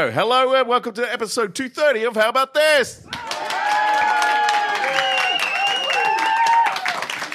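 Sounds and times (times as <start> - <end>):
speech: 0.0 - 3.2
audience round of applause: 3.1 - 7.3
whoops and cheering voices: 3.1 - 7.3.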